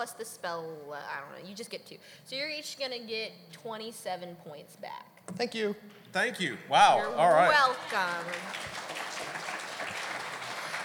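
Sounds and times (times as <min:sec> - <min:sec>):
speech: 0:00.0 - 0:09.5
audience clapping and cheering: 0:07.2 - 0:10.8.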